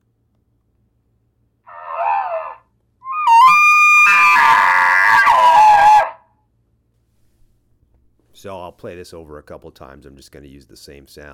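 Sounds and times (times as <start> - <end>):
bull courting bugle call: 1.7 - 6.2
speech: 8.4 - 11.3.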